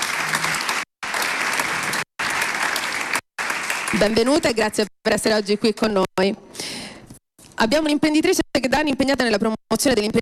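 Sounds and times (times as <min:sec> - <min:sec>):
audience applause: 0:00.0 - 0:04.5
speech: 0:03.9 - 0:06.7, 0:07.6 - 0:10.2.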